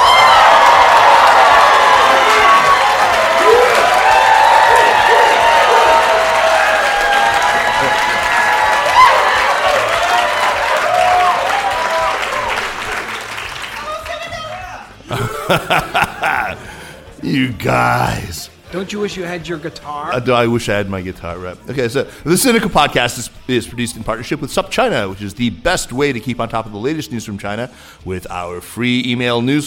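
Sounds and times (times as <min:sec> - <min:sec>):
Schwartzman scholars and friends cheering at Schwartzman College, Tsinghua University, Beijing: 0:00.0 - 0:14.0, 0:15.2 - 0:16.9
laughter: 0:15.0 - 0:18.3
speech: 0:15.5 - 0:15.9, 0:17.3 - 0:29.6.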